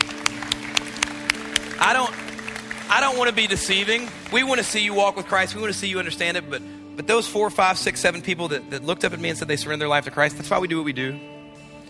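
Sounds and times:
hand claps: 0.0 - 5.0
speech: 1.8 - 2.2, 2.9 - 11.3.

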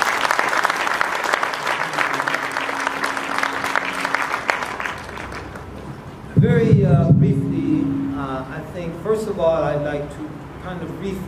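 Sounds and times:
audience round of applause: 0.0 - 6.1
faint hum: 1.2 - 11.2
speech: 8.6 - 11.2.

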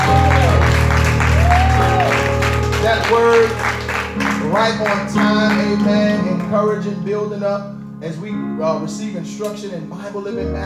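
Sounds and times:
audience applauding: 0.0 - 6.5
speech: 4.6 - 10.6.

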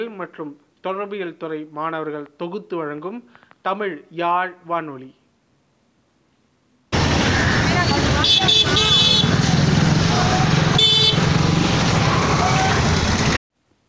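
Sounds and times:
speech: 0.0 - 5.2, 8.2 - 8.9
busy road traffic: 6.8 - 13.4.

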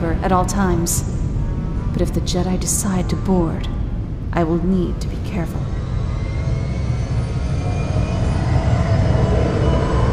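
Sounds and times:
speech: 0.0 - 1.2, 2.0 - 3.8, 4.4 - 5.6
enormous engines of 30 ships: 5.1 - 10.1.

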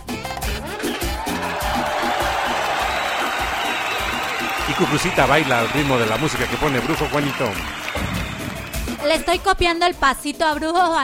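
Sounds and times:
audience applause: 0.6 - 9.5
speech: 4.8 - 7.8, 9.0 - 11.0.

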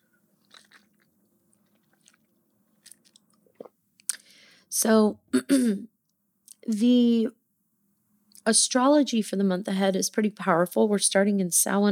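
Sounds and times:
person drinking water: 0.4 - 4.3
speech: 4.8 - 5.9, 6.6 - 7.4, 8.4 - 11.9.

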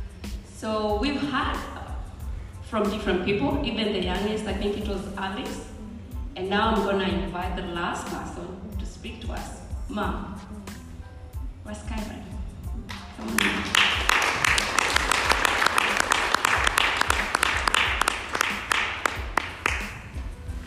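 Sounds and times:
speech: 0.6 - 1.8, 2.7 - 5.7, 6.4 - 10.6, 11.7 - 12.3, 13.2 - 13.9
crowd clapping: 12.9 - 20.3.

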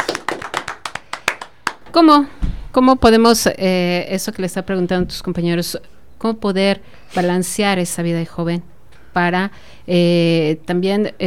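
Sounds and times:
small group clapping: 0.0 - 2.0
speech: 2.0 - 11.2.

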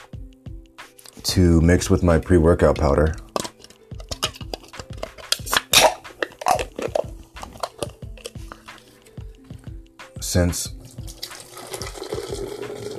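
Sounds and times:
speech: 1.2 - 3.3, 10.3 - 10.8
can of San Pellegrino Limonata being cracked open: 3.3 - 8.9.

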